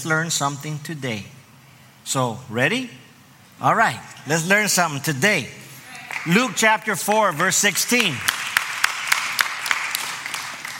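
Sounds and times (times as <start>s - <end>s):
speech: 0.0s - 1.4s, 2.0s - 3.0s, 3.6s - 5.6s, 6.2s - 8.4s
audience clapping in a church during a sermon: 5.9s - 10.7s.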